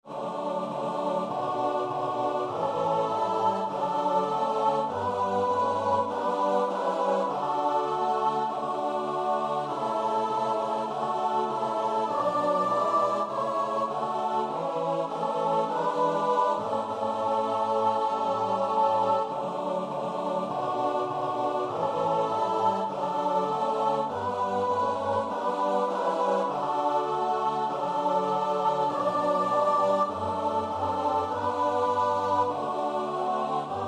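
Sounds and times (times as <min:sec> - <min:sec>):
choir singing: 0:00.0 - 0:33.8.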